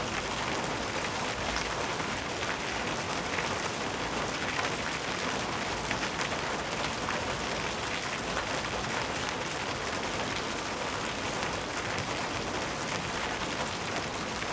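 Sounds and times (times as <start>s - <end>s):
rain on pavement: 0.0s - 14.5s
wind: 0.0s - 14.5s.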